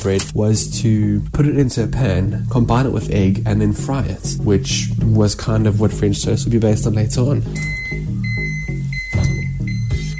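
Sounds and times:
speech: 0.0 - 7.8
microwave electronic beeping: 7.6 - 10.1.

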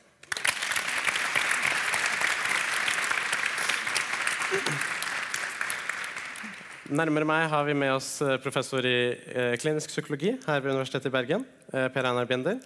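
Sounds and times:
audience applause: 0.2 - 7.2
speech: 6.9 - 12.6.

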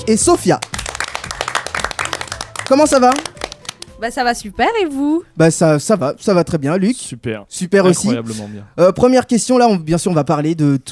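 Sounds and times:
speech: 0.0 - 0.8, 2.7 - 3.3, 4.0 - 10.8
audience applause: 0.6 - 3.9.

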